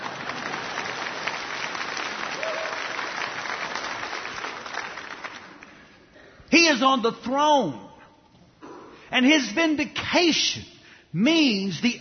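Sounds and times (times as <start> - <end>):
audience applause: 0.0 - 6.0
speech: 6.6 - 7.9, 9.1 - 11.9.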